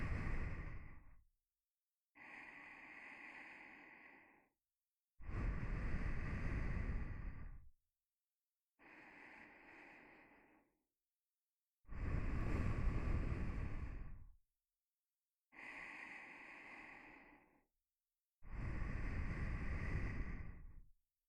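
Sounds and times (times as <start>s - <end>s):
nose breathing while lying beside: 0.0s - 1.1s, 2.2s - 4.5s, 5.2s - 7.6s, 8.8s - 10.7s, 11.9s - 14.2s, 15.6s - 17.6s, 18.5s - 20.8s.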